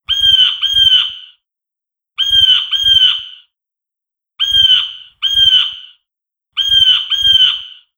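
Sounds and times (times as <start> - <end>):
bird: 0.1 - 1.4, 2.2 - 3.5, 4.4 - 6.0, 6.6 - 7.9.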